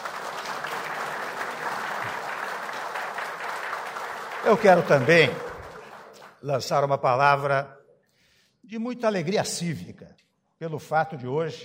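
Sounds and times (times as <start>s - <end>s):
audience applause: 0.0s - 6.4s
speech: 4.4s - 5.5s, 6.4s - 7.8s, 8.6s - 11.6s.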